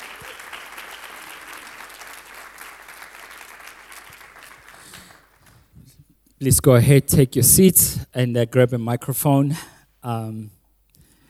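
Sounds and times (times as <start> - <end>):
audience applause: 0.0 - 5.4
speech: 6.4 - 10.6.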